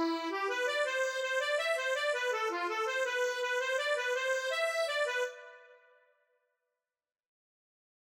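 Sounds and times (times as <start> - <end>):
Scottish mazurka on accordion: 0.0 - 5.8.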